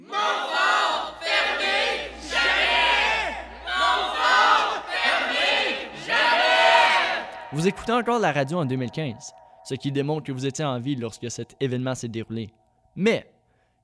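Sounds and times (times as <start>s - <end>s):
Franco-Ontarian crowd shouting for a cause: 0.0s - 9.4s
speech: 7.6s - 13.8s.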